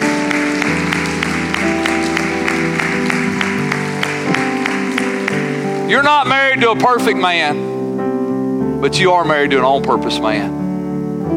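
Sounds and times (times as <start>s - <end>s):
audience clapping: 0.0s - 6.7s
loud organ-like chords: 0.0s - 11.3s
speech: 5.9s - 7.7s, 8.8s - 10.6s.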